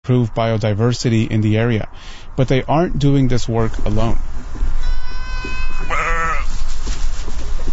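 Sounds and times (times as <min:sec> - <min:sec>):
speech: 0:00.1 - 0:04.8
goats and sheep bleating: 0:04.8 - 0:06.5.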